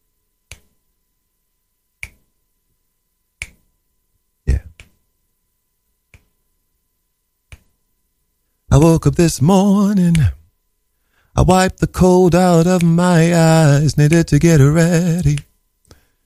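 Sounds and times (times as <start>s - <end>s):
finger snapping: 0.5s - 0.7s, 2.0s - 2.3s, 3.4s - 3.6s, 4.7s - 5.0s, 6.1s - 6.3s, 7.5s - 7.7s, 10.1s - 10.3s, 14.1s - 14.3s, 15.2s - 16.0s
speech: 8.8s - 10.4s, 11.4s - 15.5s.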